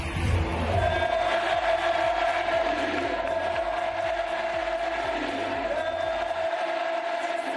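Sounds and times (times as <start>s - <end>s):
huge stadium crowd chanting a team name: 0.1s - 7.5s.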